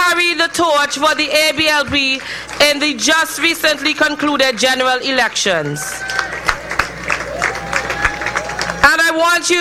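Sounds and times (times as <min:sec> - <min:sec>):
speech: 0:00.4 - 0:06.2, 0:09.2 - 0:09.6
crowd applauding: 0:00.8 - 0:03.2, 0:05.6 - 0:09.0
faint cheering: 0:05.6 - 0:08.9.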